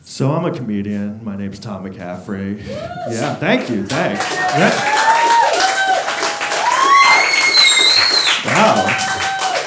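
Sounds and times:
speech: 0.2 - 5.2, 8.6 - 9.1
people cheering: 2.6 - 9.6
audience applause: 2.7 - 9.6
shrill whistles: 4.2 - 9.6.

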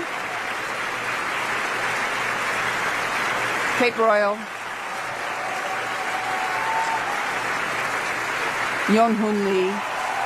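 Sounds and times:
audience applause: 0.0 - 10.2
speech: 3.8 - 4.5, 8.9 - 9.9.

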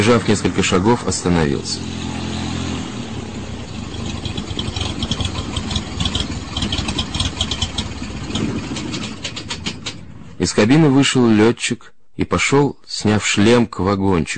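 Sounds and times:
speech: 0.0 - 2.1, 10.5 - 14.3
small propeller plane engine rumbling: 0.0 - 10.4.

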